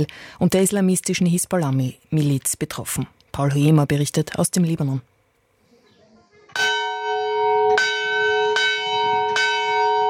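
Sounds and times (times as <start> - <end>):
speech: 0.0 - 5.1
monastery church bells ringing: 6.6 - 10.0.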